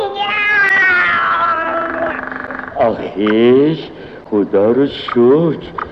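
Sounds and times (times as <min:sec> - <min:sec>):
cat meowing: 0:00.1 - 0:03.4
speech: 0:02.9 - 0:05.8.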